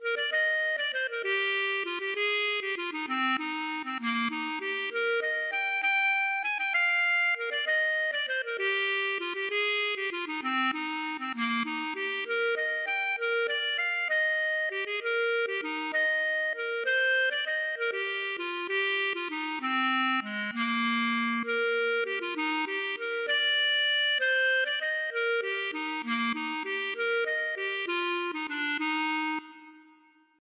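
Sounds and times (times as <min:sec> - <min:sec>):
waltz music: 0:00.0 - 0:30.3.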